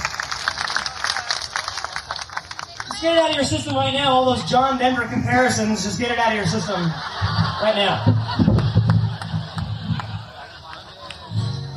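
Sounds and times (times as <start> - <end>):
concert audience applause for a guitarist: 0.0 - 3.9, 8.4 - 11.4
speech: 3.0 - 8.5
laughter: 6.2 - 11.7.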